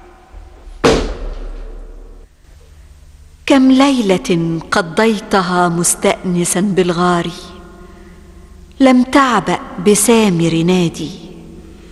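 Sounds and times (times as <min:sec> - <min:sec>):
door being broken down: 0:00.0 - 0:02.4
speech: 0:03.5 - 0:07.5, 0:08.8 - 0:11.3.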